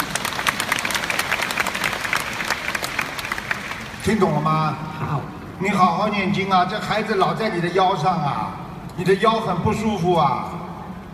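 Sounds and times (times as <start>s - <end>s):
crowd clapping: 0.0s - 4.4s
speech: 4.0s - 10.6s.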